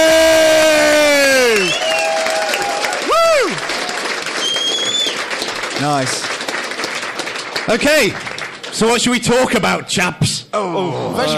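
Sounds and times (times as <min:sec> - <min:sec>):
audience cheering: 0:00.0 - 0:06.2
audience applause: 0:00.0 - 0:09.5
speech: 0:05.9 - 0:06.2, 0:07.7 - 0:11.3.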